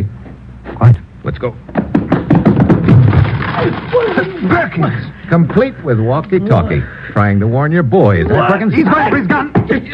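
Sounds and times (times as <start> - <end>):
speech: 0.8 - 2.0, 3.6 - 9.9
running footsteps: 1.7 - 4.7, 8.2 - 9.9.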